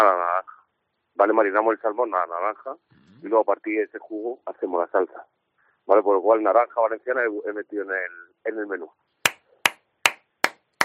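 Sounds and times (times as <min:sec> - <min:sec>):
speech: 0:01.2 - 0:09.0
hand claps in a studio: 0:09.3 - 0:10.8.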